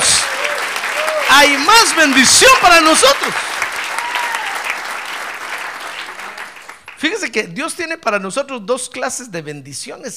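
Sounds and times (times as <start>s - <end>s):
faint voice or cheer: 0.0s - 1.6s, 3.7s - 4.8s
audience applause: 0.0s - 7.0s
speech: 1.4s - 3.5s, 7.0s - 10.1s.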